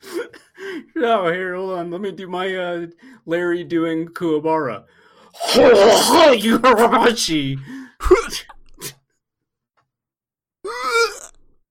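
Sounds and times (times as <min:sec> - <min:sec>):
speech: 0:01.0 - 0:09.0
person coughing something up: 0:08.0 - 0:08.9
voiced groaning throat clearing: 0:08.0 - 0:08.9.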